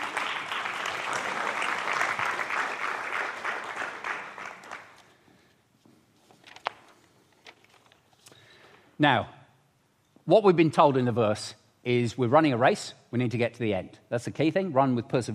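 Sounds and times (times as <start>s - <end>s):
audience clapping: 0.0s - 5.2s
speech: 9.0s - 9.4s, 10.3s - 15.3s.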